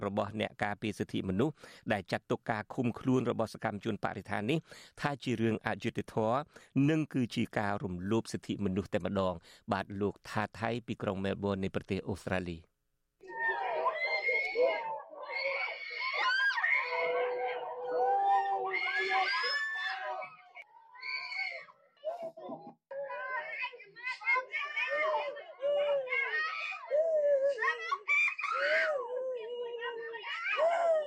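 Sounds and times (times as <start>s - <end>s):
speech: 0.0s - 12.7s
youths and citizens screaming and wailing during a police raid: 13.2s - 23.6s, 24.6s - 31.0s.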